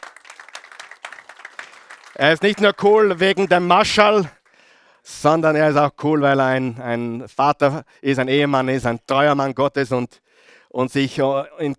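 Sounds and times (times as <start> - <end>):
audience applause: 0.0 - 4.6
speech: 2.2 - 4.4, 5.0 - 11.7.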